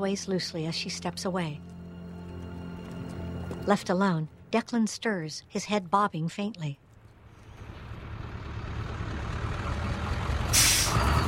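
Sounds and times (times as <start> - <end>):
speech: 0.0 - 1.7, 3.7 - 6.8
low rumbling bus engine idling: 7.0 - 11.2
bus air brakes hissing: 10.5 - 11.2.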